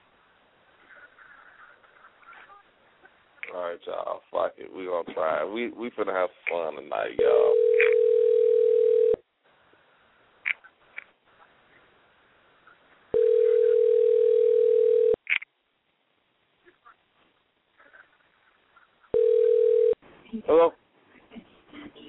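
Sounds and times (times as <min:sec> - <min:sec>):
speech: 0:03.6 - 0:07.6
telephone ringback tone on an outgoing call: 0:07.4 - 0:09.2, 0:13.2 - 0:15.2, 0:19.2 - 0:20.0.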